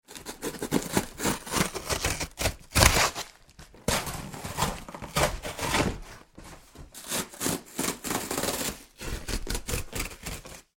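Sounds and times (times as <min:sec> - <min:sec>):
cello tape tearing off cardboard box: 0:00.1 - 0:06.2, 0:06.9 - 0:10.6.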